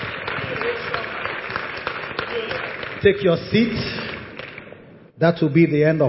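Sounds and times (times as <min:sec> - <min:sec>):
church congregation applause: 0:00.0 - 0:04.8
speech: 0:03.0 - 0:04.0, 0:05.2 - 0:06.0.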